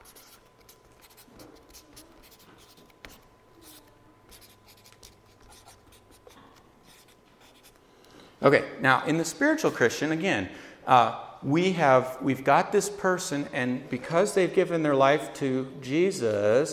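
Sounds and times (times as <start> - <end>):
writing on a board: 0.0 - 7.8
speech: 8.4 - 16.7.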